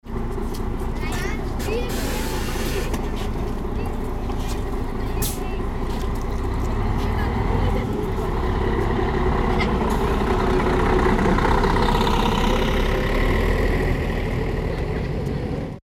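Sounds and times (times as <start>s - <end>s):
bus pulling out: 0.1s - 15.8s.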